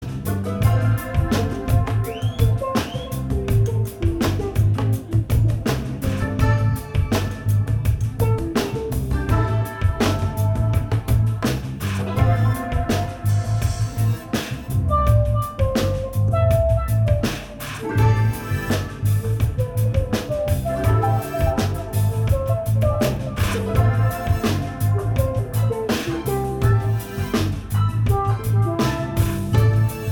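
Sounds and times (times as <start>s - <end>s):
improvised music jam: 0.0s - 30.0s.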